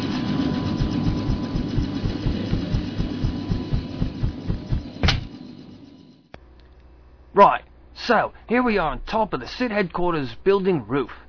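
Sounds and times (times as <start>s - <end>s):
helicopter engine droning: 0.0s - 6.3s
helicopter rotor blades thumping: 0.5s - 5.3s
sharp burst of noise: 0.6s - 5.1s
speech: 7.4s - 11.2s.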